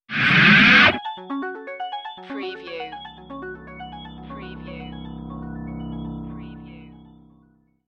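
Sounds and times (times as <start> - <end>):
harsh sci-fi audio logo ident with digital afterglow: 0.1 - 1.0, 3.0 - 7.4.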